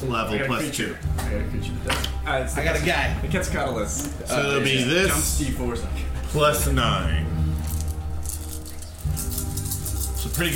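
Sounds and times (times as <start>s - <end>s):
speech: 0.0s - 7.4s, 10.3s - 10.5s
dice rolling: 7.6s - 10.5s.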